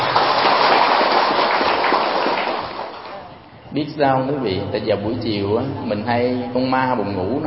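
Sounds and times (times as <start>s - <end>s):
audience applause: 0.0s - 3.3s
speech: 3.7s - 7.4s.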